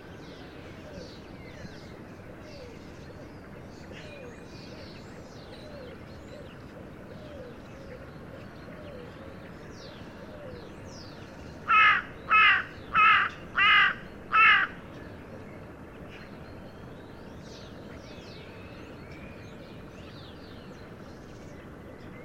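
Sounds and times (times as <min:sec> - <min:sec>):
Carrion crow Corvus corone cawing: 0:11.7 - 0:14.8.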